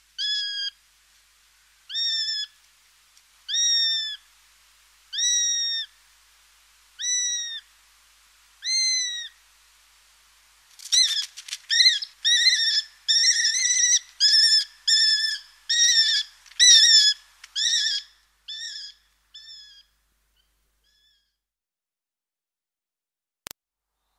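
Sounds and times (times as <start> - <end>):
Eurasian sparrowhawk whistling calls: 0.2 - 0.8, 3.5 - 4.2, 5.1 - 5.9, 7.0 - 7.6, 8.6 - 9.4, 10.9 - 19.9, 20.9 - 21.3.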